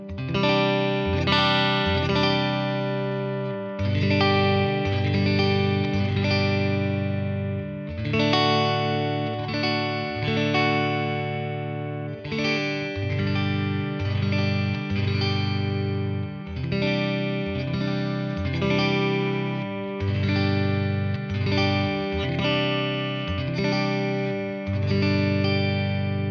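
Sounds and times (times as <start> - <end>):
clean Telecaster electric guitar on bridge pickup: 0.0 - 26.2.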